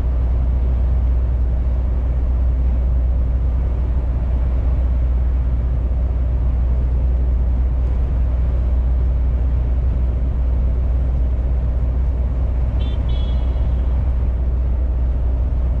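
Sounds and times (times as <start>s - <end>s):
truck engine droning: 0.0s - 15.7s.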